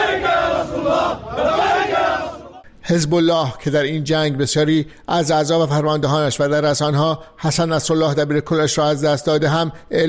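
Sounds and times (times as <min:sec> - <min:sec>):
crowd of Hezbollah supporters chanting and shouting in celebration after a ceasefire: 0:00.0 - 0:02.7
speech: 0:02.9 - 0:10.0.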